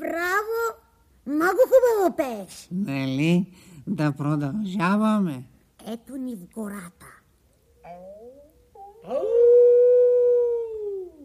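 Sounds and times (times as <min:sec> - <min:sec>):
speech: 0:01.4 - 0:07.2, 0:09.0 - 0:09.7
wolf howling in a forest: 0:07.7 - 0:11.2.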